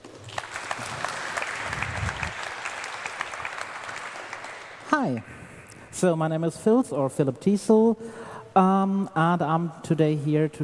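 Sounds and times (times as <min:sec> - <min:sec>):
audience clapping: 0:00.0 - 0:05.3
speech: 0:04.9 - 0:05.4, 0:06.0 - 0:10.6.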